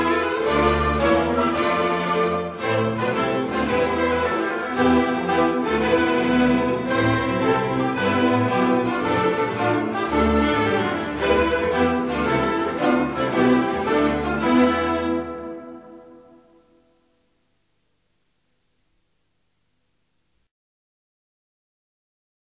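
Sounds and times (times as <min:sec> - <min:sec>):
orchestra: 0:00.0 - 0:17.5.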